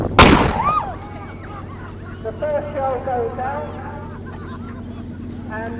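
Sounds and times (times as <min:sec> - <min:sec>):
25pr Sexton self-propelled gun firing: 0:00.2 - 0:01.0
laughter: 0:00.7 - 0:02.4, 0:03.5 - 0:05.7.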